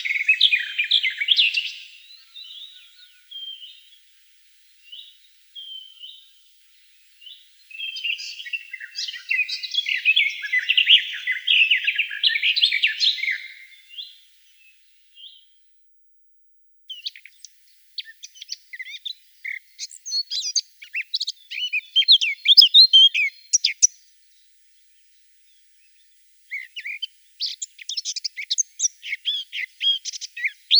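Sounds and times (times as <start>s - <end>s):
Eurasian blackcap song: 0.0s - 3.9s, 7.1s - 15.4s, 16.9s - 24.0s, 25.5s - 30.7s.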